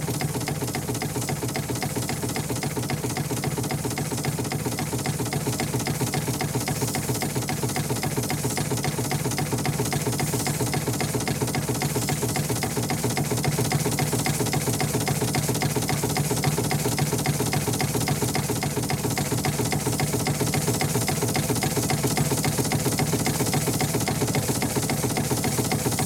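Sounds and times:
ship engine running: 0:00.0 - 0:26.0.

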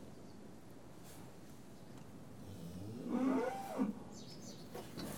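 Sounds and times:
farm cattle mooing while being tested: 0:02.7 - 0:04.0.

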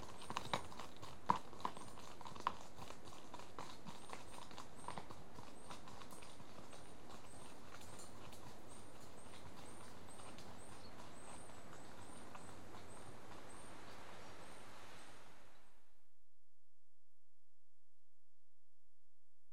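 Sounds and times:
two horses at walk on gravelly track: 0:00.0 - 0:15.0.

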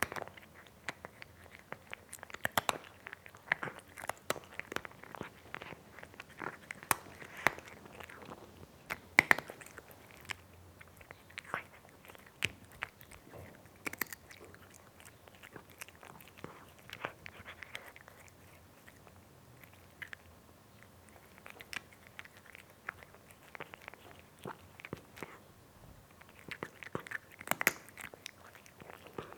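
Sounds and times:
cat eating with sharp crunchy bites: 0:00.0 - 0:25.4, 0:26.0 - 0:29.3.

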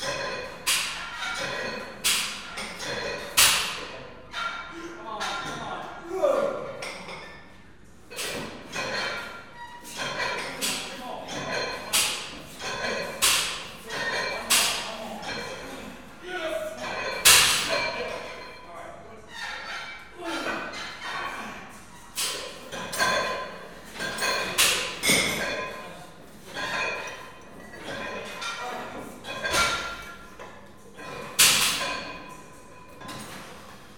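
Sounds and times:
weight training group exercising: 0:00.0 - 0:33.9
people speaking: 0:04.7 - 0:06.8, 0:10.3 - 0:19.3, 0:20.2 - 0:21.7.

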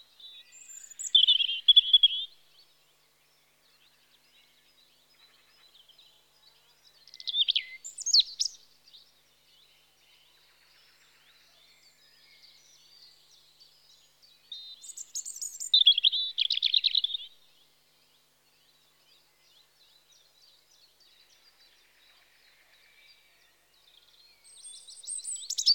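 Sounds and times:
European robin Erithacus rubecula singing in spring: 0:00.2 - 0:02.7, 0:06.9 - 0:09.1, 0:11.8 - 0:17.7, 0:24.0 - 0:25.7.

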